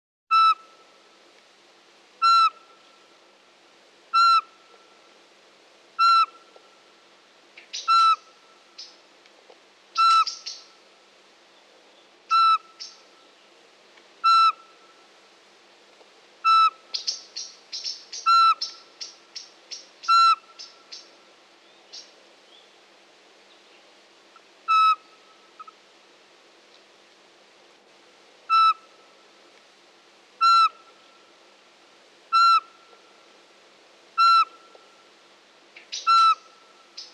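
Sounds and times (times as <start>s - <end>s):
Eurasian pygmy owl whistling: 0.3s - 0.7s, 2.2s - 2.7s, 4.1s - 4.5s, 6.0s - 6.4s, 7.7s - 8.9s, 10.0s - 10.7s, 12.3s - 13.0s, 14.2s - 14.7s, 16.4s - 21.1s, 24.7s - 25.7s, 28.5s - 28.9s, 30.4s - 30.8s, 32.3s - 32.8s, 34.2s - 34.7s, 35.9s - 37.1s
small bird chirping: 7.6s - 8.2s, 10.0s - 10.7s, 12.3s - 13.0s, 16.9s - 22.7s, 35.8s - 37.1s.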